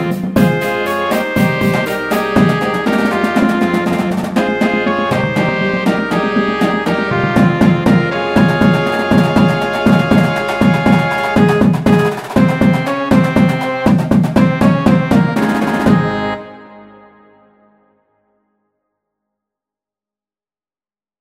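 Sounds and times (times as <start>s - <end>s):
percussion: 0.0s - 16.4s.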